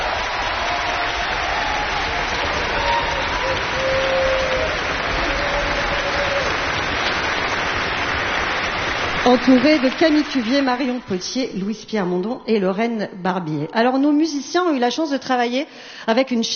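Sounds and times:
audience applause: 0.0s - 11.7s
speech: 9.3s - 16.5s.

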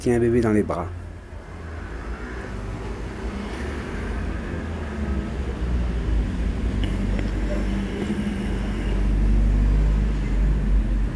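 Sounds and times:
speech: 0.0s - 1.0s
cars passing on a busy city boulevard: 0.0s - 11.1s
faint voices murmuring: 6.8s - 9.3s.

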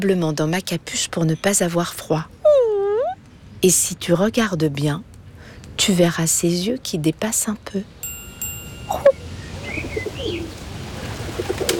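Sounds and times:
speech: 0.0s - 2.4s, 3.6s - 5.1s, 5.8s - 8.0s
bird chirps: 8.7s - 10.5s
pigeons cooing: 8.9s - 11.7s.

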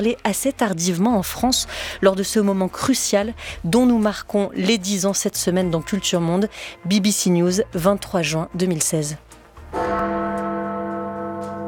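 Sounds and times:
speech: 0.0s - 9.3s
great bell of London's Westminster clock tower striking ten: 9.7s - 11.6s.

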